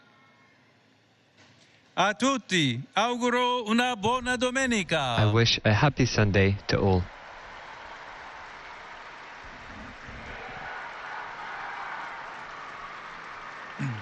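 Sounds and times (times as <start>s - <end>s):
speech: 2.0s - 7.2s
crowd of pilgrims applauding in St. Peter's Square: 6.0s - 13.9s.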